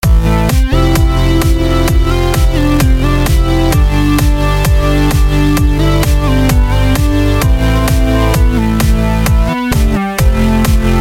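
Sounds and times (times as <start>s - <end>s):
piano synth: 0.3s - 11.0s.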